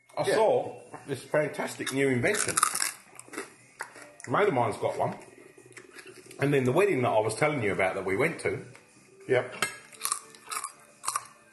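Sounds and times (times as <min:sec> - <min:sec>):
speech: 0:00.2 - 0:02.8, 0:04.3 - 0:05.3, 0:06.4 - 0:09.7
chewing crunchy food: 0:01.8 - 0:04.3, 0:05.3 - 0:06.4, 0:09.9 - 0:11.5.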